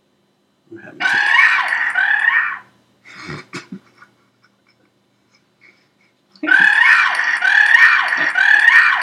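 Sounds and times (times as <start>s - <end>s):
basketball fan's high-pitched bird-like shriek: 1.0s - 2.7s, 6.4s - 9.0s.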